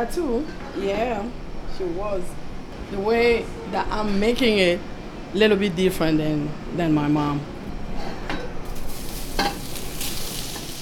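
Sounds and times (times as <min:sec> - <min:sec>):
speech: 0:00.0 - 0:07.5
clinks and scraping stir sounds: 0:08.0 - 0:10.7
goat meat sizzling while being cooked: 0:08.6 - 0:10.7.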